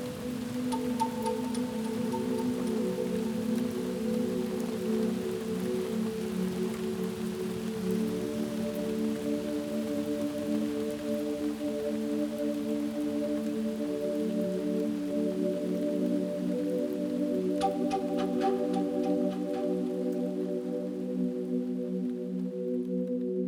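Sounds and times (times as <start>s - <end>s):
heavy rain: 0.0s - 23.2s.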